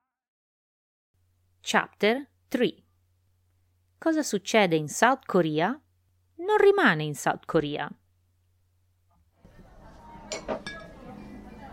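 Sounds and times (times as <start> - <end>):
speech: 1.7 - 2.8, 4.0 - 5.8, 6.4 - 8.0
soju glasses clinking in a bar in Pyongyang: 10.2 - 11.6.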